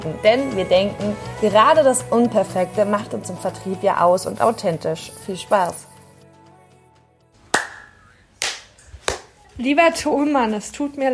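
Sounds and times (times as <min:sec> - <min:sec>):
speech: 0:00.0 - 0:05.9, 0:09.6 - 0:11.1
hand clap for audio sync: 0:07.5 - 0:09.4.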